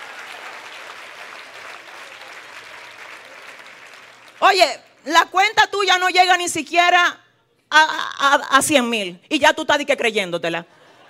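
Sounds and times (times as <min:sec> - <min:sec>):
crowd applause: 0:00.0 - 0:04.4
speech: 0:04.5 - 0:10.8.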